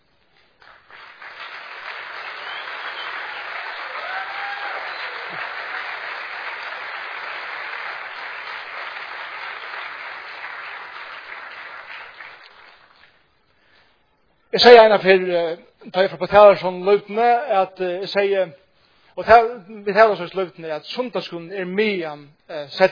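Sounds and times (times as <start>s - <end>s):
sustained audience applause: 0.6s - 13.2s
speech: 14.5s - 18.6s, 19.2s - 22.8s.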